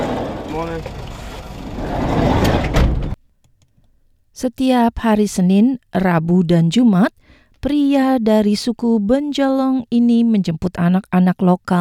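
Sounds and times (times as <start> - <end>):
minibus driven house to house in Redfern, Sydney: 0.0 - 3.2
speech: 0.6 - 1.0, 1.8 - 2.2, 4.4 - 11.7.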